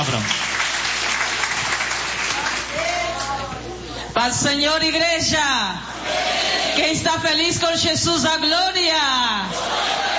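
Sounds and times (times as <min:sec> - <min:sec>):
speech: 0:00.0 - 0:00.4, 0:04.2 - 0:10.0
audience clapping: 0:00.0 - 0:03.4.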